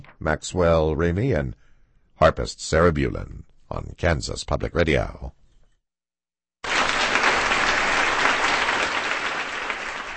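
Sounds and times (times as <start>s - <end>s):
speech: 0.2s - 5.4s
concert audience applause: 6.6s - 10.1s.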